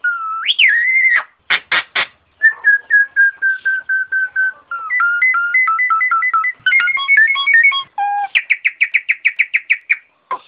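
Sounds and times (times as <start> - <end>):
Nias hill myna whistling: 0.0 - 1.3, 2.4 - 10.4.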